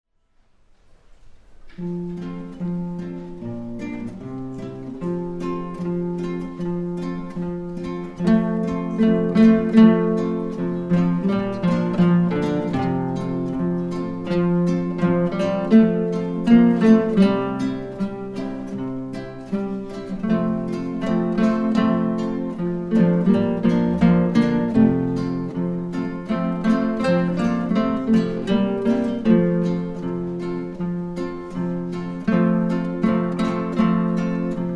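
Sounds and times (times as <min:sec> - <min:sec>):
guitar ensemble prelude: 0:01.1 - 0:34.7.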